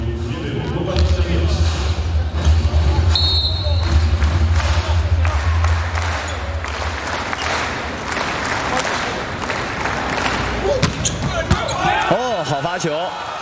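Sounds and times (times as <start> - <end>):
arena crowd noise: 0.0 - 13.4
clapping: 3.8 - 10.5
volleyball serve thumps in a men's volleyball match: 10.7 - 11.9.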